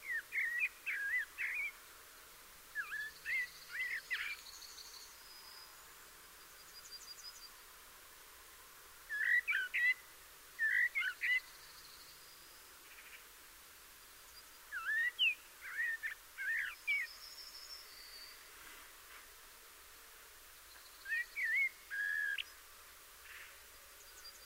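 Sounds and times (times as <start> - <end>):
Eurasian blackbird singing: 0.0 - 1.7, 2.8 - 4.7, 9.1 - 10.0, 10.6 - 11.5, 14.7 - 18.4, 20.8 - 22.5
steady low hiss: 0.0 - 24.4.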